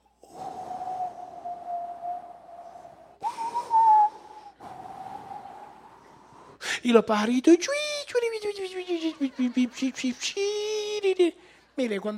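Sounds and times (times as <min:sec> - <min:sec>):
voice imitating blowing wind with breathy hooting whooshes: 0:00.3 - 0:06.0
speech: 0:06.8 - 0:07.9, 0:08.9 - 0:12.1
laughter: 0:08.4 - 0:12.0.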